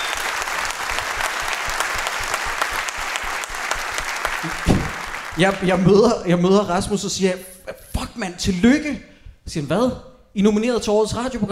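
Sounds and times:
live crowd applause for hosts nominated for radio program of the year: 0:00.0 - 0:06.0
speech: 0:05.4 - 0:07.6, 0:08.2 - 0:11.4.

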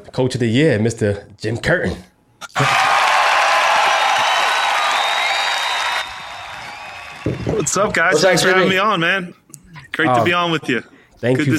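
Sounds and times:
speech: 0:00.0 - 0:02.8, 0:07.7 - 0:09.4, 0:10.0 - 0:11.5
applause: 0:02.6 - 0:07.8
cheering: 0:02.6 - 0:08.2.

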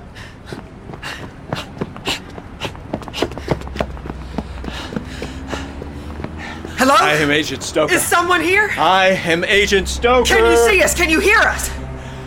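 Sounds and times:
low rumble: 0:00.0 - 0:12.2
footsteps of people running away: 0:00.2 - 0:07.2
speech: 0:07.1 - 0:11.8.

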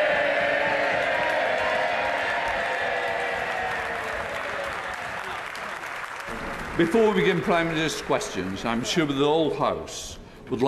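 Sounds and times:
MPs applauding in a packed Parliament chamber: 0:00.0 - 0:09.8
speech: 0:06.8 - 0:10.6.

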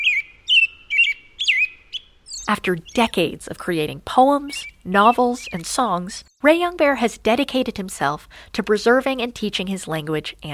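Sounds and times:
American Robin singing: 0:00.0 - 0:07.1
speech: 0:02.5 - 0:10.5.

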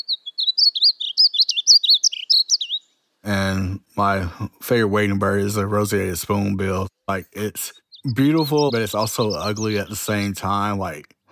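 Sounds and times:
Painted Bunting song: 0:00.0 - 0:03.6, 0:06.8 - 0:11.2
speech: 0:03.2 - 0:11.2.

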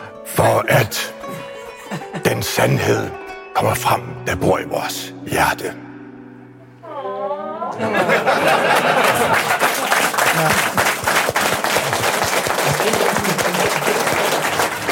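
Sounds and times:
speech: 0:00.4 - 0:01.2, 0:01.9 - 0:05.8, 0:07.8 - 0:09.6, 0:10.4 - 0:10.8
laughter: 0:00.4 - 0:02.6, 0:07.4 - 0:14.9
audience clapping: 0:08.3 - 0:14.9.

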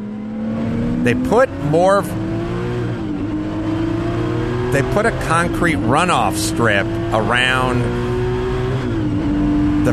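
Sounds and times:
race car engine in the video game Transcendental Racing: 0:00.0 - 0:09.9
speech: 0:01.0 - 0:02.2, 0:04.7 - 0:08.0.

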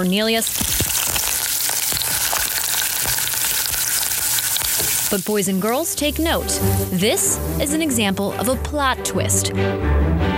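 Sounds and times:
speech: 0:00.0 - 0:00.8, 0:05.1 - 0:10.0
thin shaved potato slices frying in hot oil: 0:00.0 - 0:07.8.

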